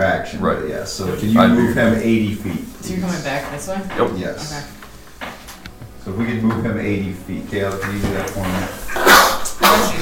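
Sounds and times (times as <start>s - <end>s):
speech: 0.0s - 4.8s, 6.0s - 9.9s
sneeze: 8.9s - 9.9s.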